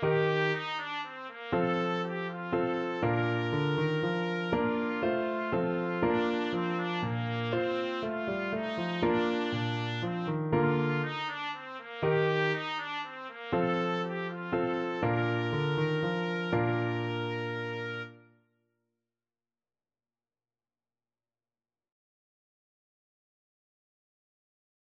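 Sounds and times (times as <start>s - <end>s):
trumpet playing a minuet: 0.0s - 18.3s.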